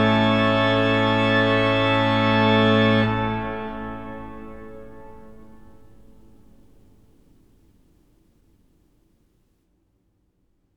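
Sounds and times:
organ playing chorale preludes: 0.0 - 6.6.

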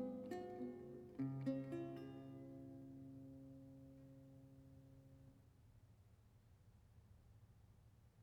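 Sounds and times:
lute solo: 0.0 - 4.7.

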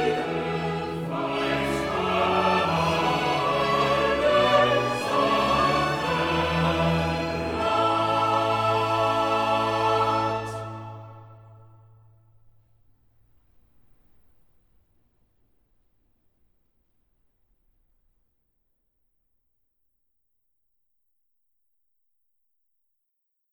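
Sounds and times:
choir singing cantatas: 0.0 - 11.9.

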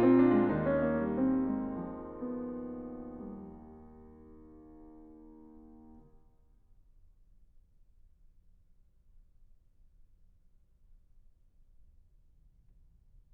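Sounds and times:
fugue in E-flat major: 0.0 - 6.0.

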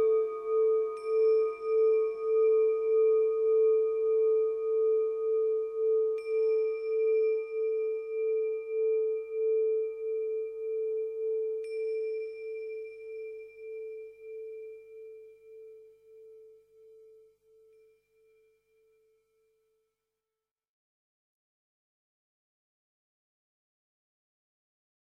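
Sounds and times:
singing bowls improvisation for the sixth chakra: 0.0 - 19.1.

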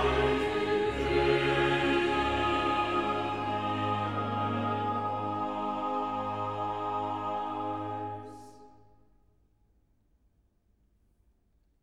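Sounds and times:
chorale: 0.0 - 9.1.

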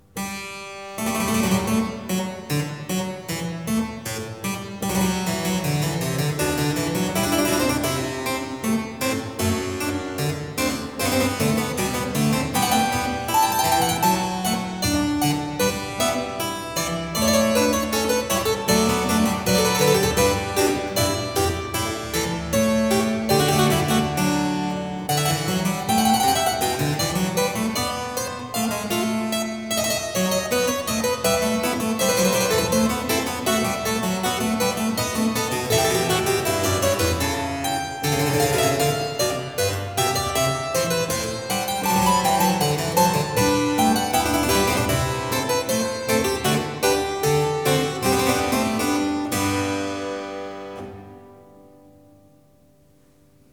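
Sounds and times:
fughetta for one keyboard: 1.1 - 51.2.

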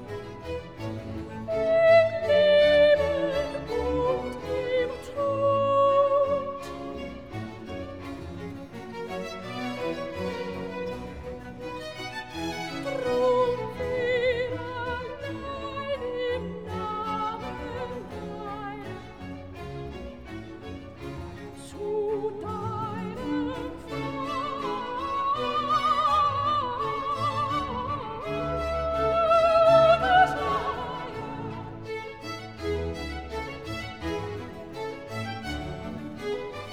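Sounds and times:
soprano singing a chorale: 0.0 - 8.1, 12.6 - 20.0, 21.4 - 34.1.

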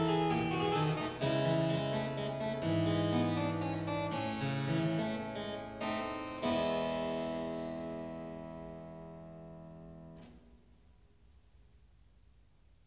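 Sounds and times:
clavier prelude in E major: 0.0 - 10.3.

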